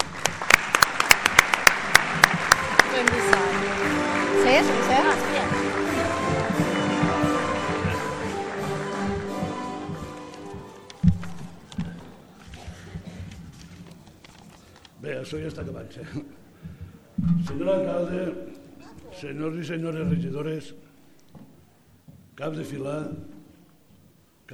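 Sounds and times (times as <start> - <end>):
audience applause: 0.0 - 11.8
cheering voices: 0.9 - 10.4
speech: 15.3 - 16.4, 17.4 - 18.6, 19.2 - 20.8, 22.4 - 23.3.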